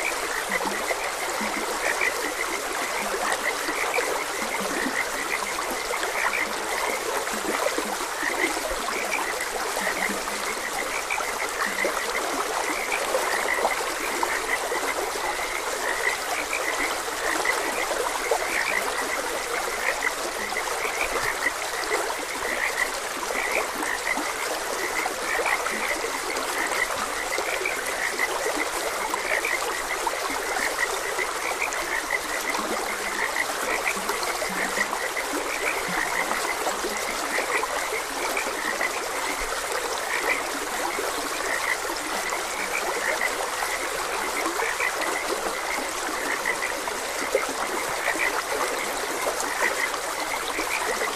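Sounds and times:
frog chorus croaking: 0.0 - 51.1
stream water flowing: 0.0 - 51.1.

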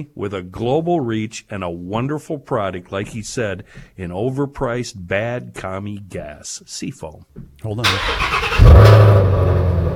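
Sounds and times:
speech: 0.0 - 9.7
Mustang GT350 engine revving and idling: 8.3 - 9.9.

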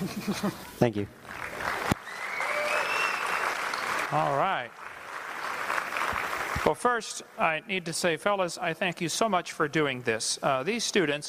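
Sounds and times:
speech: 0.0 - 1.5, 4.1 - 4.8, 6.6 - 11.2
audience applause: 1.2 - 6.8
faint whistles: 2.1 - 3.4.

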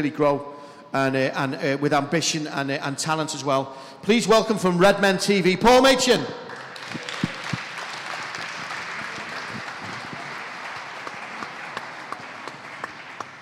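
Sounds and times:
speech: 0.0 - 7.0
audience applause: 6.5 - 13.4.

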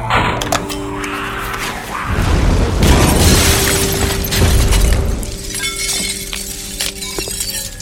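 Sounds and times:
shattering crackling debris: 0.4 - 7.7
hand grenade explosion: 2.1 - 5.4.

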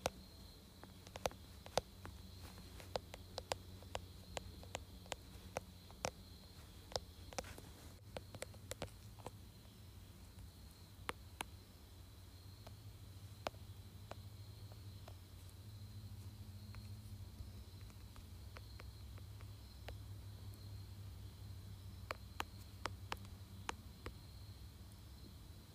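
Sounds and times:
steady low hum: 0.0 - 25.7
sharp dry taps on a phone case and screen: 0.8 - 9.3, 22.1 - 24.2.

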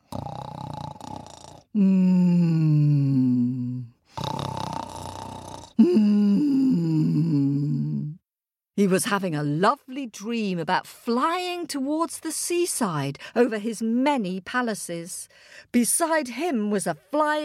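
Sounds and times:
person imitating loud snoring: 0.0 - 8.2
speech: 1.8 - 2.3, 8.8 - 17.4.

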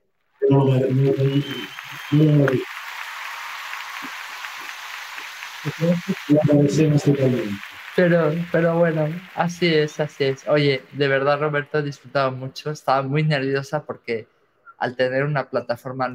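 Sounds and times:
applause sound effect: 0.4 - 12.8
speech: 0.5 - 2.7, 5.6 - 16.1.

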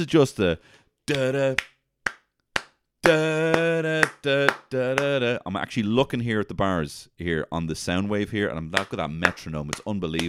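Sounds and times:
speech: 0.0 - 1.7, 3.1 - 10.2
sharp handclaps from the opening of a song: 1.1 - 5.2, 8.8 - 10.2.

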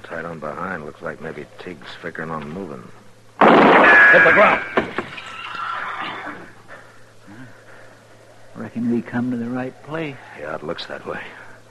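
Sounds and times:
steady low hum: 0.0 - 11.6
speech: 0.1 - 3.0, 4.1 - 5.0, 8.6 - 11.4
saddled horse whinnying: 5.1 - 6.6.

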